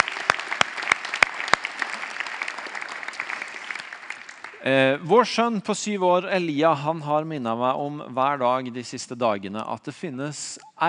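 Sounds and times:
audience applause: 0:00.0 - 0:04.9
speech: 0:04.6 - 0:10.7.

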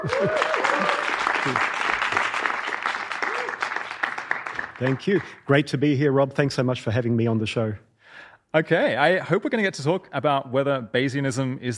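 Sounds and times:
whoops and cheering voices: 0:00.0 - 0:01.6, 0:03.1 - 0:03.8
speech: 0:00.0 - 0:01.8, 0:04.8 - 0:07.9, 0:08.5 - 0:11.7
live audience clapping: 0:00.0 - 0:05.6.

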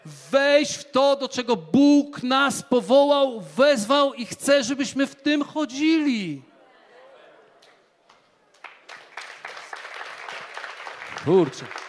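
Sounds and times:
speech: 0:00.3 - 0:06.5, 0:11.2 - 0:11.8
audience applause: 0:08.5 - 0:11.8.

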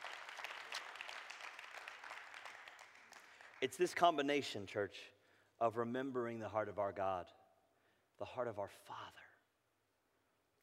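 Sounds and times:
audience clapping: 0:00.0 - 0:04.0
speech: 0:03.6 - 0:07.4, 0:08.2 - 0:09.2.

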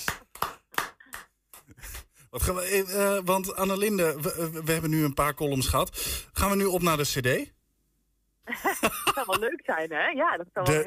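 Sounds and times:
applause: 0:00.0 - 0:01.4
speech: 0:02.3 - 0:07.6, 0:08.5 - 0:10.8.

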